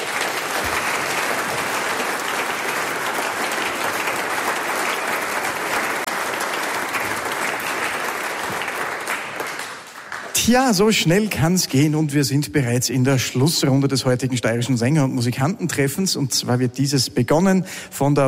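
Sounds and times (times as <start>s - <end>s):
audience applause: 0.0s - 10.9s
speech: 10.5s - 18.2s.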